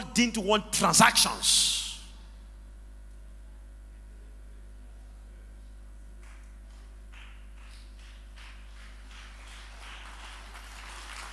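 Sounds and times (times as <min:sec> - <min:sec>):
speech: 0:00.2 - 0:01.8
faint scattered hand clapping from a crowd: 0:06.2 - 0:11.3.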